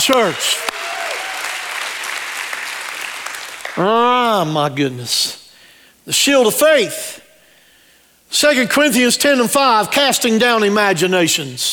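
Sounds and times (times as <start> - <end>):
sharp claps: 0.0 - 3.8
speech: 0.1 - 0.8, 3.8 - 5.4, 6.1 - 7.2, 8.3 - 11.7
audience applause: 0.1 - 3.8.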